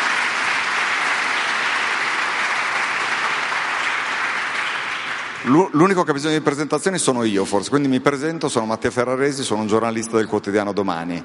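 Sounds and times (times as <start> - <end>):
audience applause: 0.0 - 6.0
speech: 5.4 - 11.2.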